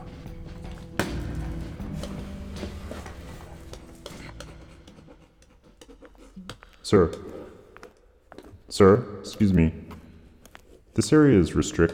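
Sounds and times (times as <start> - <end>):
pencil scratching on the paper of a journal: 2.9 - 6.6
speech: 6.9 - 7.3, 8.8 - 9.8, 11.0 - 11.9.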